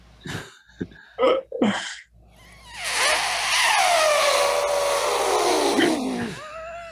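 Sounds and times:
person imitating an elephant trumpeting: 0:02.6 - 0:06.9.

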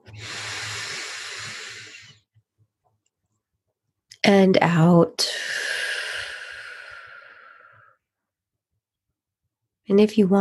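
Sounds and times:
slow deep breath in during a guided breathing exercise: 0:00.0 - 0:02.2, 0:05.3 - 0:08.0
speech: 0:04.3 - 0:05.5, 0:09.9 - 0:10.3.

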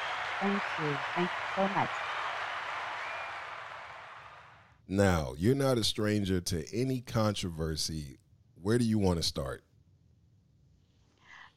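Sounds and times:
audience applause: 0:00.0 - 0:04.6
speech: 0:00.4 - 0:02.1, 0:04.9 - 0:09.7.

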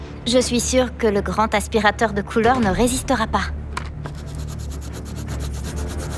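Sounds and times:
speech: 0:00.2 - 0:03.6
markers squeaking and scratching across canvas: 0:04.1 - 0:06.1.

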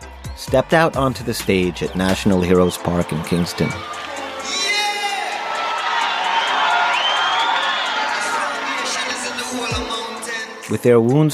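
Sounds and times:
large concert crowd cheering, shouting and whooping: 0:00.0 - 0:10.8
speech: 0:00.4 - 0:04.1, 0:10.7 - 0:11.3
faint rhythmic clapping: 0:01.3 - 0:10.8.

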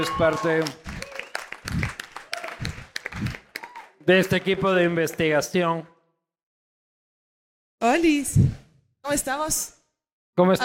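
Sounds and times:
speech: 0:00.0 - 0:00.8, 0:04.0 - 0:05.9, 0:07.8 - 0:09.8, 0:10.4 - 0:10.6
voices and cheers: 0:00.0 - 0:04.9
audience applause: 0:00.0 - 0:05.5.

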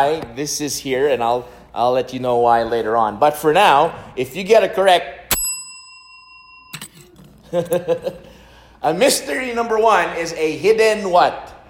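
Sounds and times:
speech: 0:00.0 - 0:05.2, 0:07.5 - 0:11.5
order bell ding: 0:05.3 - 0:07.3.

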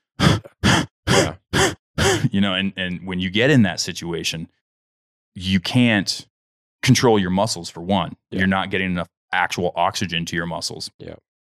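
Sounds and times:
voice imitating heavy, labored out-of-control breathing: 0:00.2 - 0:02.4
speech: 0:02.2 - 0:04.6, 0:05.4 - 0:11.3.

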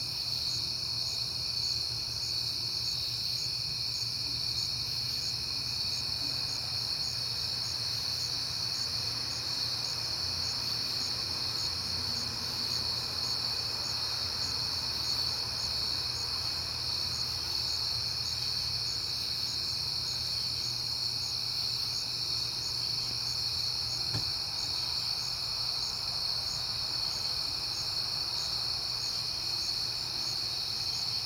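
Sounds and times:
crickets chirping: 0:00.0 - 0:31.2.

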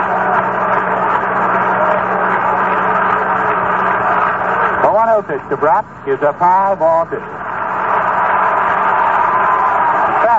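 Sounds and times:
enthusiastic baseball stadium crowd cheering: 0:00.0 - 0:10.3
speech: 0:05.2 - 0:07.4.

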